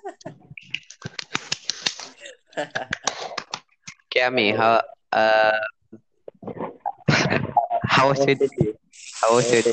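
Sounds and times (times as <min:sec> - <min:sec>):
hand clapping: 0:00.6 - 0:02.2, 0:02.7 - 0:04.0
laughter: 0:02.6 - 0:03.5
speech: 0:04.2 - 0:05.7, 0:08.0 - 0:09.7.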